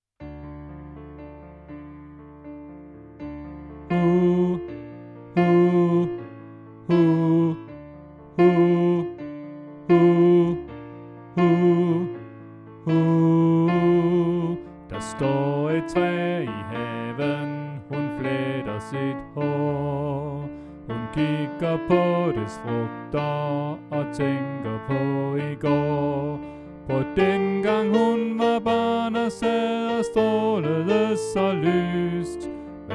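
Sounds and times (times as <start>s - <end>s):
soprano voice: 5.4s - 7.8s, 8.4s - 9.2s, 9.9s - 12.2s, 12.8s - 32.9s.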